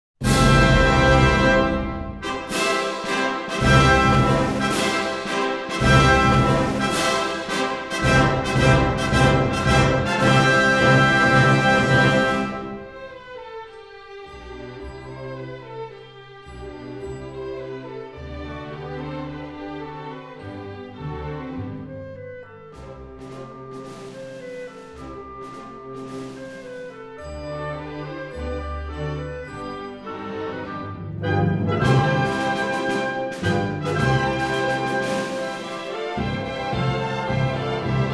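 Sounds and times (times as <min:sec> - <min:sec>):
national anthem: 0:00.2 - 0:13.3, 0:21.7 - 0:38.1.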